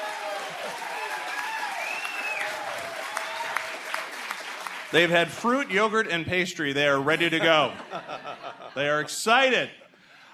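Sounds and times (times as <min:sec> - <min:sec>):
live studio audience applauding before a roundtable panel: 0:00.0 - 0:06.0
speech: 0:04.9 - 0:09.8
laughter: 0:07.1 - 0:10.3.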